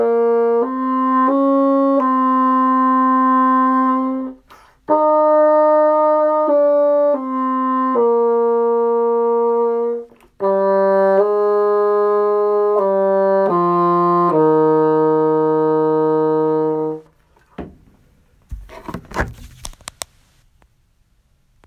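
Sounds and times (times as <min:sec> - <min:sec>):
bassoon: 0:00.0 - 0:17.1.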